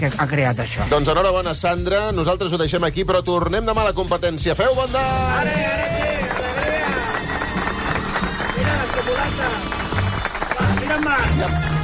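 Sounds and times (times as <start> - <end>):
speech: 0.0 - 6.0
audience applause: 5.4 - 11.8.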